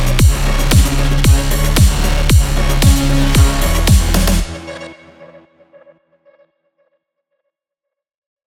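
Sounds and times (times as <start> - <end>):
heavy electronic music: 0.0 - 6.1.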